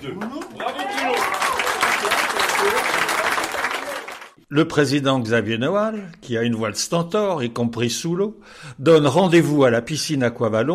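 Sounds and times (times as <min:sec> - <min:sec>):
speech: 0:00.0 - 0:00.9, 0:04.5 - 0:10.7
audience applause: 0:00.0 - 0:04.4.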